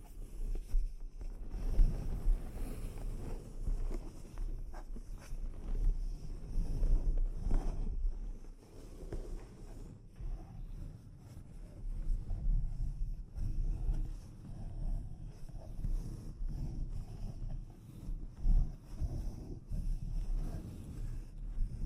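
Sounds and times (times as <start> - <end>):
delicate scratching and tapping on a microphone: 0.0 - 21.8.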